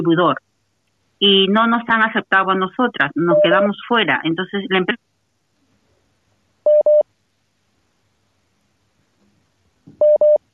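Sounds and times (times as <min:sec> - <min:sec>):
speech: 0:00.0 - 0:00.5, 0:01.2 - 0:05.1
telephone line beeps as another call comes in and drops the first: 0:06.7 - 0:07.0, 0:10.0 - 0:10.4.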